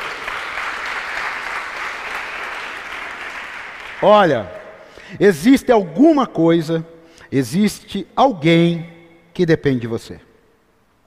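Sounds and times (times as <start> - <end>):
audience applause: 0.0 - 4.7
speech: 4.0 - 10.3.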